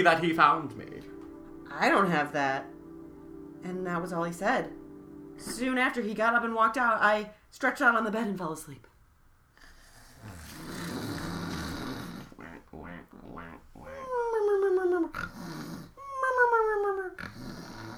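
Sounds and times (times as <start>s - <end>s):
speech: 0.0s - 1.1s, 1.7s - 2.7s, 3.6s - 4.8s, 5.4s - 8.9s
exaggerated snoring imitated by voice: 10.0s - 17.9s.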